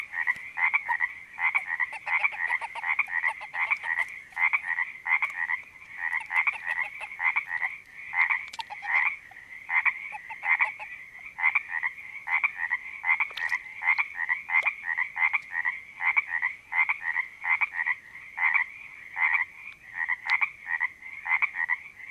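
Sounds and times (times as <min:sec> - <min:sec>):
creek frog chorus croaking at a creek in Panoche Valley, California: 0:00.0 - 0:22.0.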